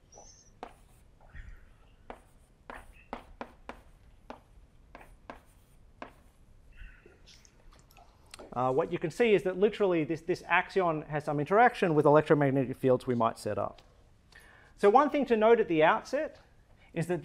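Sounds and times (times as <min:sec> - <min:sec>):
writing on a board during a physics lecture: 0:00.1 - 0:01.3, 0:02.0 - 0:06.4
speech: 0:08.5 - 0:13.9, 0:14.8 - 0:16.4, 0:17.0 - 0:17.2.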